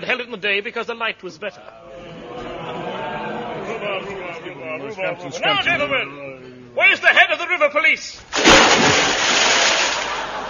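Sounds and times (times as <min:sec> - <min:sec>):
speech: 0:00.1 - 0:02.1, 0:03.7 - 0:09.3
laughter: 0:01.6 - 0:05.7, 0:10.0 - 0:10.4
splash of someone falling into water: 0:08.3 - 0:10.4.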